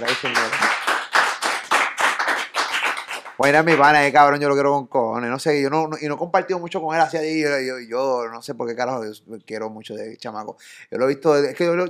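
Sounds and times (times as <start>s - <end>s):
speech: 0.0s - 0.8s, 3.4s - 11.8s
applause: 0.0s - 4.0s.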